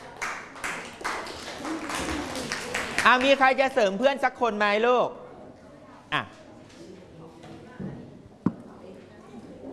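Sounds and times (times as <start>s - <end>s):
classroom of children clapping: 0.0s - 3.4s
speech: 3.0s - 5.2s, 6.1s - 6.4s.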